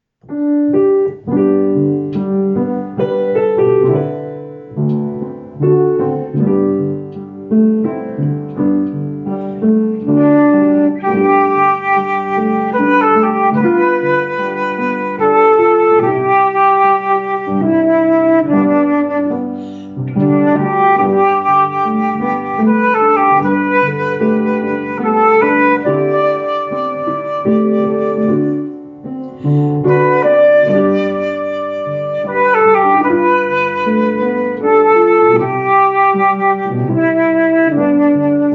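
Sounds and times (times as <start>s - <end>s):
instrumental solo: 0.3s - 38.5s.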